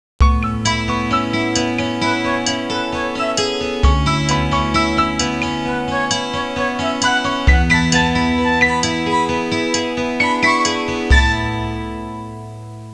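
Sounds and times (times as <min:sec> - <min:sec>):
Hawaiian music ringtone: 0:00.4 - 0:12.4.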